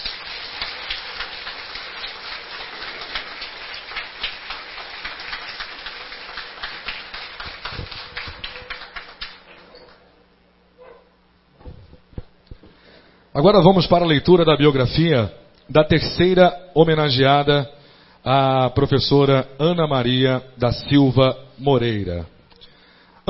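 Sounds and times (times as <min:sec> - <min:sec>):
round of applause: 0:00.0 - 0:10.0
speech: 0:13.4 - 0:22.4.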